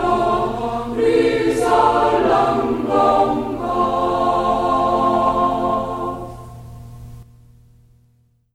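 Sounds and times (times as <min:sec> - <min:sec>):
madrigal choir singing: 0:00.0 - 0:06.6.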